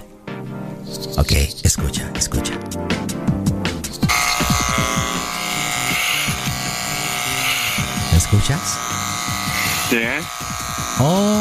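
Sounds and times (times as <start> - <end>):
speech: 0.9 - 3.1, 8.3 - 9.0, 9.9 - 11.3
double-headed vibrator buzzing: 3.3 - 11.3.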